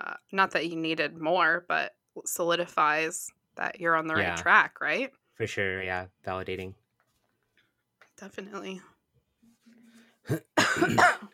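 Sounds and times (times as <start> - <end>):
speech: 0.3 - 6.8, 8.2 - 8.9, 10.3 - 11.2
person coughing from seltzer down the wrong pipe: 10.3 - 11.3.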